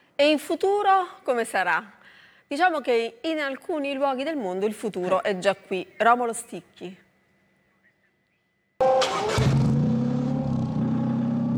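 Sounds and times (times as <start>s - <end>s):
speech: 0.2s - 7.0s
exhaust of a hydrogen-fuelled combustion-engine car rumbling: 8.8s - 11.5s.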